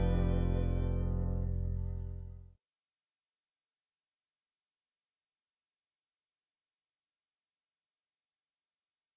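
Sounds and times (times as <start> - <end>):
fiddle: 0.0 - 1.9.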